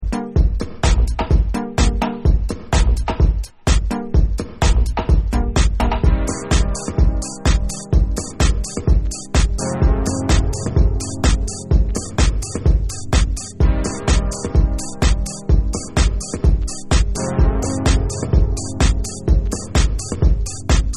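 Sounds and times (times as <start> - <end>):
radio instrumental music: 0.0 - 20.9.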